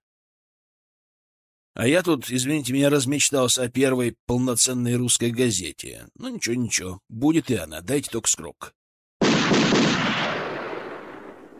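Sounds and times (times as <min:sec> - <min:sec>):
speech: 0:01.8 - 0:08.8
rifle gunshots at the Spassky Gate: 0:09.2 - 0:11.5.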